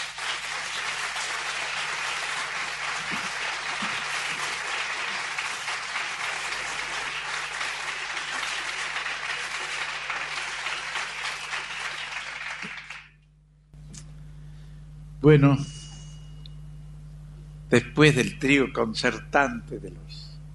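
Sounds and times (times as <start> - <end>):
audience applause: 0.0 - 13.2
faint low hum: 0.0 - 20.5
speech: 15.2 - 15.7, 17.7 - 20.3.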